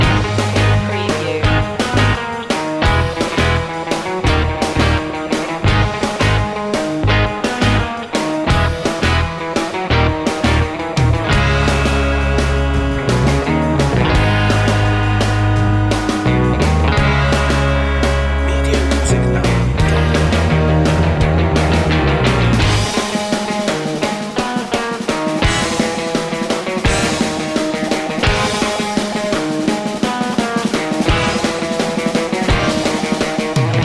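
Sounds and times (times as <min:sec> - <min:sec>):
surf music loop: 0:00.0 - 0:33.8.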